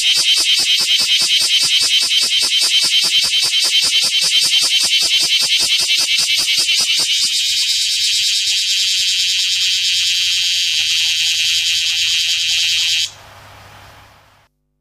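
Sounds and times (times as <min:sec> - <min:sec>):
bear cicada buzzing: 0:00.0 - 0:14.5
quiet hiss: 0:13.1 - 0:14.7.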